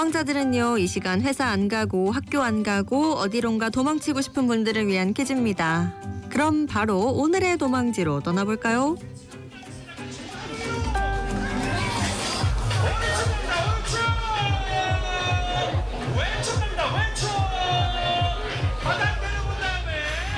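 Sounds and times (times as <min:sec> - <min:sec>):
speech: 0:00.0 - 0:09.2
crowd hubbub at a marathon starting line: 0:09.8 - 0:20.3
rhythmic low thumping: 0:12.4 - 0:20.3.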